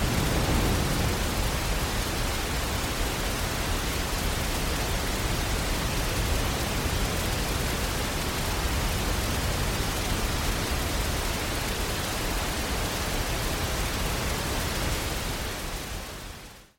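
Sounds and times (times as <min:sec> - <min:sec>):
thunder: 0:00.0 - 0:07.8
rain: 0:00.0 - 0:16.7.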